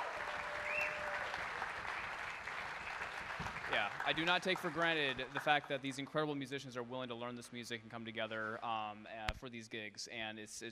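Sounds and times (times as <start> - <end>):
audience applause for the band: 0.0 - 6.1
speech: 3.7 - 10.7.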